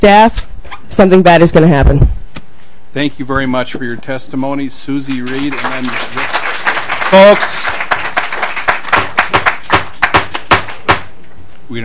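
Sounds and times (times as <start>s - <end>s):
speech: 0.0s - 2.2s, 2.9s - 6.2s, 7.1s - 7.8s
scattered applause at a public hearing on a bill: 5.1s - 11.0s.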